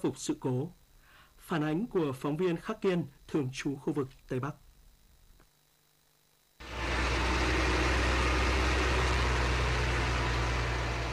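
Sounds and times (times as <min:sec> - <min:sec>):
speech: 0:00.0 - 0:00.8, 0:01.5 - 0:04.6
excavator and bulldozer engines roaring: 0:06.6 - 0:11.1
rainfall: 0:06.6 - 0:11.1.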